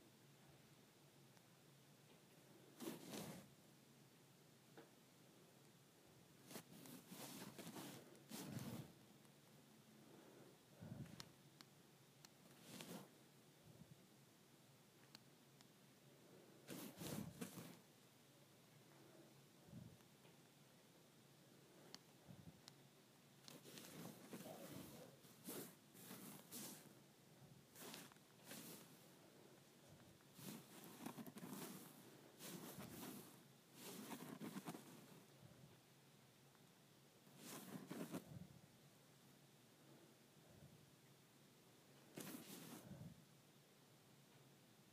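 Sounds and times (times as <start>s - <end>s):
faint steady hiss: 0.0s - 44.9s
iPhone charger cord being scraped: 2.8s - 3.5s, 6.5s - 9.0s, 12.5s - 13.1s, 16.7s - 17.8s, 23.5s - 27.0s, 27.7s - 29.0s, 29.9s - 35.2s, 37.4s - 38.3s, 42.2s - 42.9s.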